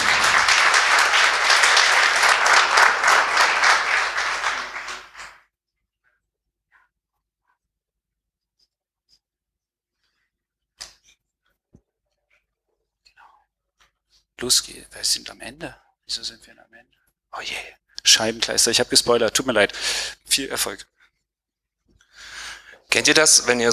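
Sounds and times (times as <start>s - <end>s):
audience applause: 0.0s - 5.4s
speech: 14.4s - 21.0s, 22.9s - 23.7s.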